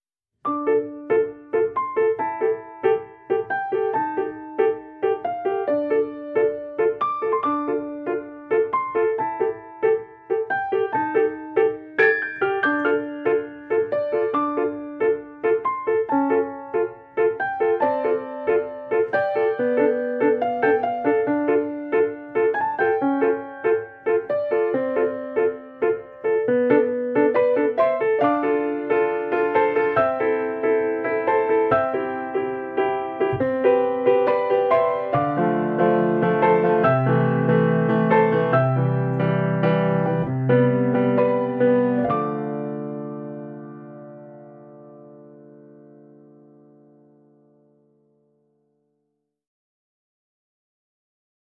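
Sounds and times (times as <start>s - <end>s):
piano: 0.0s - 49.2s.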